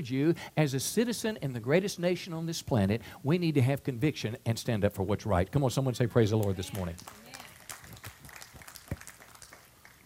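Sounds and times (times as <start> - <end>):
speech: 0.0 - 7.2
audience clapping: 6.3 - 10.0.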